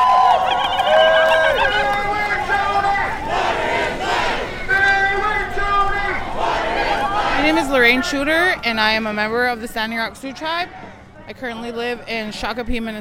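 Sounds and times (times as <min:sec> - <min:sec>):
large crowd chanting at a protest march: 0:00.0 - 0:09.2
speech: 0:07.9 - 0:13.0.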